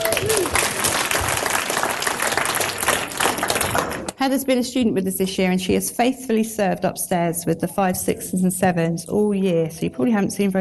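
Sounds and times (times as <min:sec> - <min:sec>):
audience applause: 0:00.0 - 0:04.1
speech: 0:04.2 - 0:10.5.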